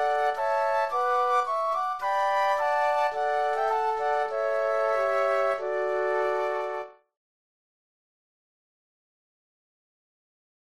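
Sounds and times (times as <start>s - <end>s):
flute trio playing a patriotic tune: 0.0s - 6.9s.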